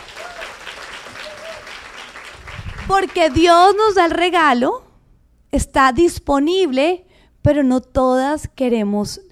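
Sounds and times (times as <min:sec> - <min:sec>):
audience of women applauding at a talk on healing and forgiveness: 0:00.0 - 0:03.5
speech: 0:02.9 - 0:04.8, 0:05.5 - 0:09.3.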